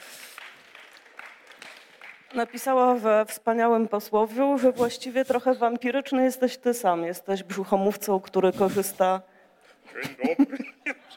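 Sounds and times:
audience applause: 0.0 - 2.6
speech: 2.3 - 9.3, 9.9 - 11.1
laughter: 9.9 - 11.1.

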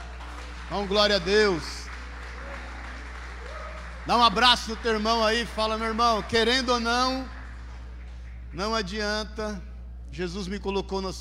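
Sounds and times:
audience applause: 0.0 - 8.5
speech: 0.7 - 1.7, 4.0 - 7.4, 8.5 - 11.2.

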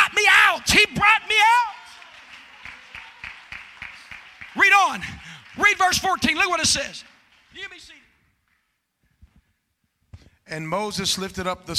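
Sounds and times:
audience clapping: 0.8 - 8.8
speech: 5.8 - 8.0, 10.5 - 11.7.

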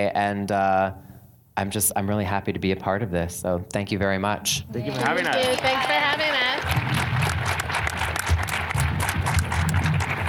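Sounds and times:
speech: 0.0 - 7.0
audience applause for panelists: 4.9 - 10.2.

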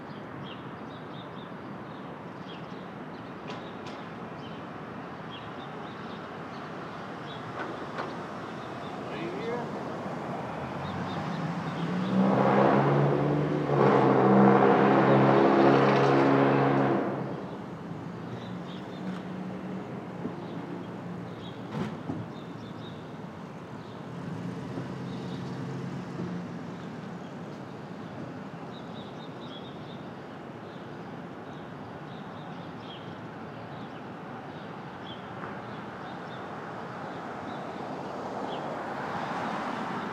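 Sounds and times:
early morning street traffic rumble in Brooklyn: 1.6 - 40.1
louder vehicle, possibly a train, with a whining tone: 10.3 - 17.4.

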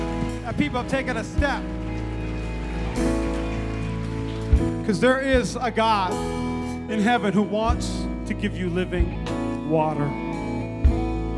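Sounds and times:
audience clapping: 0.0 - 6.3
speech: 0.5 - 1.8, 3.0 - 3.3, 4.8 - 10.2.

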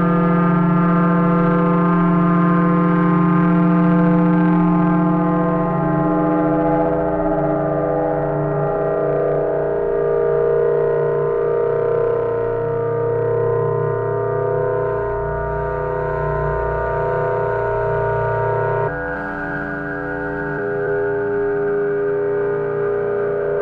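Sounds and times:
processed sine tones drone made in AudioMulch: 0.0 - 23.6
strong low hum: 12.2 - 23.6.

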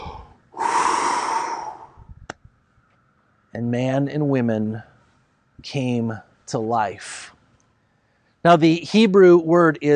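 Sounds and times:
person blowing out breath imitating God breathing life into humankind: 0.0 - 2.1
speech: 3.6 - 4.9, 5.6 - 7.4, 8.4 - 9.9.

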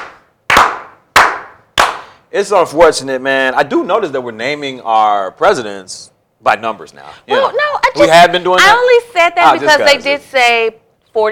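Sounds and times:
slow clap: 0.0 - 2.2
speech: 2.3 - 11.3.

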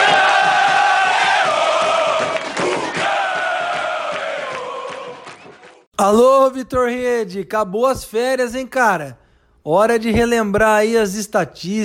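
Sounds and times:
large crowd cheering and shouting: 0.0 - 5.9
speech: 6.0 - 11.8.

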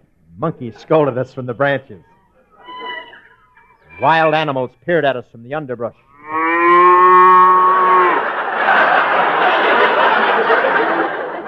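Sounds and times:
speech: 0.4 - 2.1, 4.0 - 6.4
Holstein cow mooing: 2.6 - 4.7, 6.1 - 8.3
laughter: 8.0 - 11.4.

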